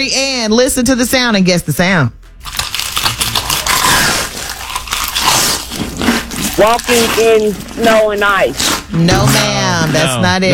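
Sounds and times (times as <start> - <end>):
speech: 0.0 - 2.2, 6.6 - 10.5
loud mukbang-style crunching and chewing: 2.4 - 10.0.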